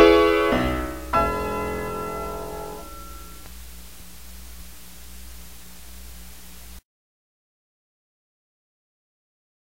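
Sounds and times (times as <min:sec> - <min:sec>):
piano: 0:00.0 - 0:03.9.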